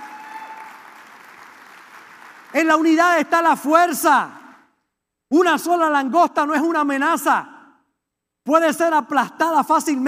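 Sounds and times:
audience applauding: 0:00.0 - 0:02.9
speech: 0:02.5 - 0:04.4, 0:05.3 - 0:07.5, 0:08.5 - 0:10.0.

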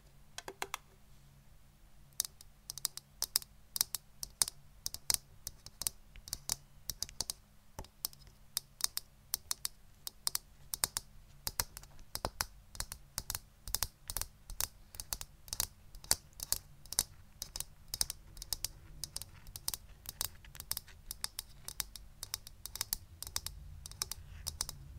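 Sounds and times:
tapping clicks: 0:02.2 - 0:24.8.

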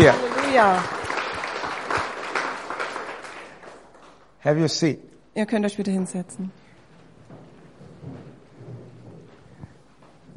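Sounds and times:
speech: 0:00.0 - 0:01.0, 0:04.4 - 0:06.6
church congregation clapping in praise during a service: 0:00.0 - 0:04.6.

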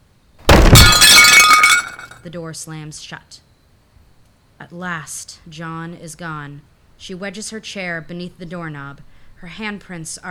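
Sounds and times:
thrown sculpture smashing: 0:00.4 - 0:02.1
glass and ceramic shards breaking: 0:00.5 - 0:02.2
speech: 0:02.2 - 0:03.5, 0:04.6 - 0:10.3.

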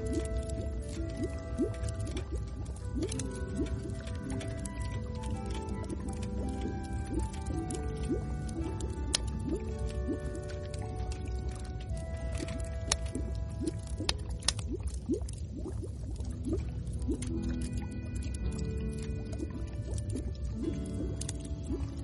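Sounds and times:
bubbles popping and gurgling: 0:00.0 - 0:22.0
fire crackling: 0:00.0 - 0:22.0.

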